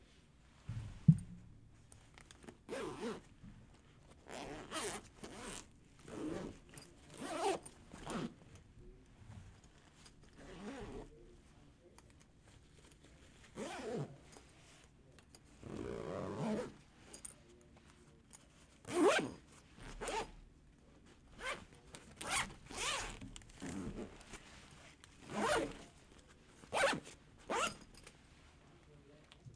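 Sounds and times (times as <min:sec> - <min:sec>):
zippers on backpack: 0:02.7 - 0:03.3, 0:04.3 - 0:08.3, 0:10.4 - 0:11.0, 0:13.5 - 0:14.1, 0:15.6 - 0:16.8, 0:18.9 - 0:20.3, 0:21.4 - 0:21.6, 0:22.2 - 0:24.3, 0:25.2 - 0:25.9, 0:26.6 - 0:27.9.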